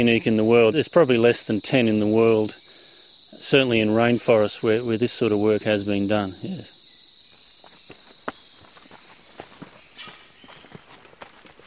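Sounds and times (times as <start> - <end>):
speech: 0.0 - 2.6, 3.3 - 6.8
insects buzzing: 0.0 - 11.6
footsteps walking along a narrow rainforest track on a ridge: 7.2 - 11.6.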